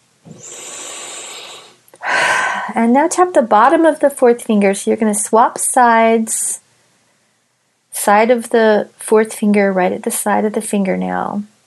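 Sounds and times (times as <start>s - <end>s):
deep breath during a guided tapping exercise: 0.3s - 2.7s
speech: 2.7s - 6.6s, 8.0s - 11.5s.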